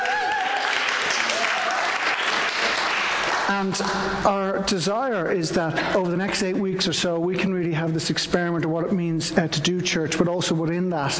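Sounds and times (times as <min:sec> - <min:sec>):
faint whistles and cheers: 0:00.0 - 0:02.0
crowd applause: 0:00.0 - 0:04.0
speech: 0:03.5 - 0:11.1.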